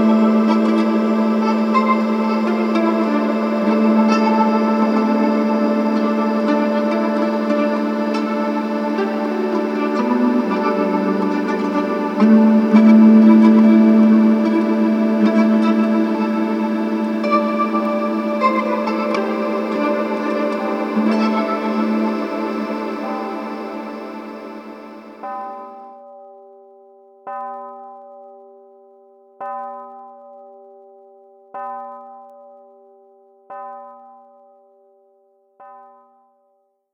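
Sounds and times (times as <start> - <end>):
mandolin: 0.0 - 25.2.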